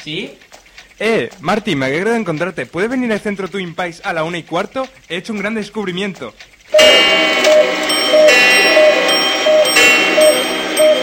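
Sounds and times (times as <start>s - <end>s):
speech: 0.0s - 7.3s
many clocks ticking: 0.0s - 11.0s
many clocks chiming the hour: 6.7s - 11.0s.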